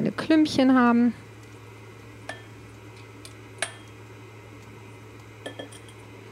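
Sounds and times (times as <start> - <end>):
low hum: 0.0 - 6.2
speech: 0.1 - 1.3
clinks against a bowl while stirring flour into cake batter: 2.3 - 2.5, 5.4 - 6.0.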